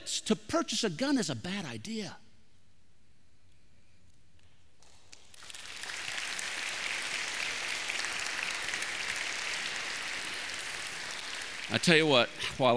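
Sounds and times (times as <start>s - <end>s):
speech: 0.1s - 2.2s, 11.7s - 12.7s
audience applause during sermon: 5.2s - 12.5s.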